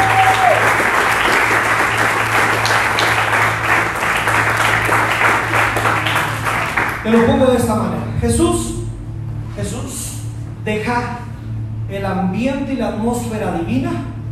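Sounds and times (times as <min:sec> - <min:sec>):
audience applauding loudly: 0:00.0 - 0:07.5
speech: 0:07.1 - 0:08.8, 0:10.7 - 0:11.2, 0:11.9 - 0:14.1.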